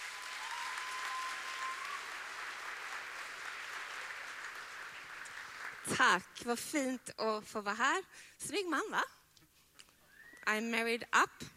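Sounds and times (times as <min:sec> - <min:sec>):
audience applause: 0:00.0 - 0:05.9
speech: 0:05.9 - 0:09.2, 0:10.4 - 0:11.5.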